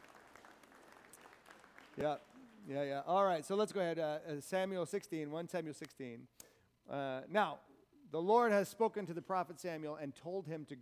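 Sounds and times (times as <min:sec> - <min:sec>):
audience applause: 0:00.0 - 0:02.9
speech: 0:02.0 - 0:10.8.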